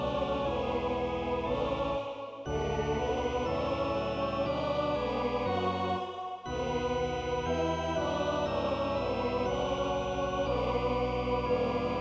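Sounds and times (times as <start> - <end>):
choir singing a chorale in D major in German and French: 0.0 - 11.9.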